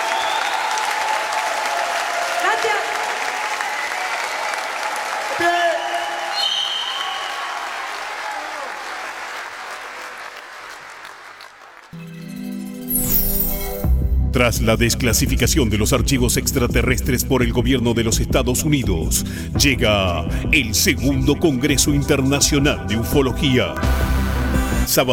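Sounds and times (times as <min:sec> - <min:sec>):
loud audience applause: 0:00.0 - 0:12.0
music: 0:12.0 - 0:25.1
speech: 0:14.5 - 0:24.1, 0:24.9 - 0:25.1.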